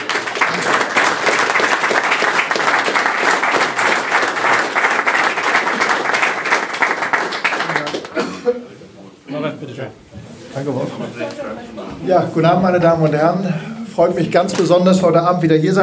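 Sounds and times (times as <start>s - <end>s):
audience applause: 0.0s - 8.2s
speech: 9.6s - 15.8s.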